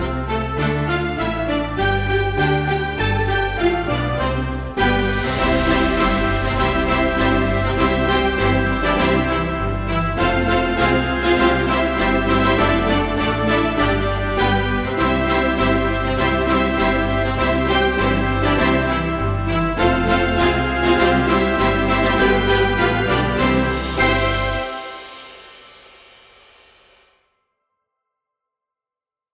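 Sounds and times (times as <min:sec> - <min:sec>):
cheerful Christmas bell music: 0:00.0 - 0:27.2.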